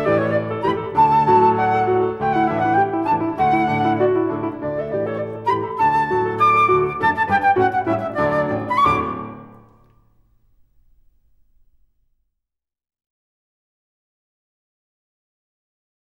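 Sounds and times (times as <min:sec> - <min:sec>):
flute performance: 0:00.0 - 0:09.9.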